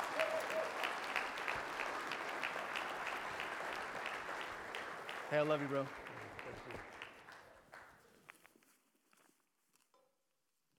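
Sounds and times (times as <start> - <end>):
church audience applause welcoming a speaker: 0.0 - 8.0
speech: 5.3 - 7.0.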